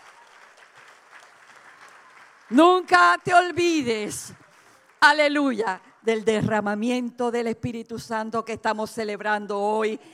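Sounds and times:
audience applause: 0:00.0 - 0:05.0
speech: 0:02.5 - 0:04.4, 0:05.0 - 0:10.1.

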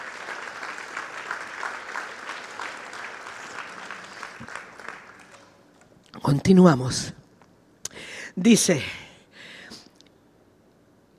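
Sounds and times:
audience applause: 0:00.0 - 0:05.6
speech: 0:06.2 - 0:07.2, 0:08.4 - 0:09.0.

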